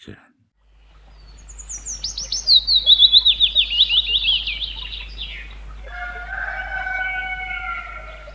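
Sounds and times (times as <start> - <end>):
willow warbler singing a falling series of whistled notes: 0.6 - 8.3.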